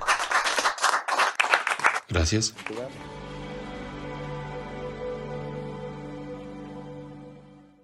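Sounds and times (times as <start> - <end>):
applause: 0.0 - 3.1
speech: 2.1 - 3.2.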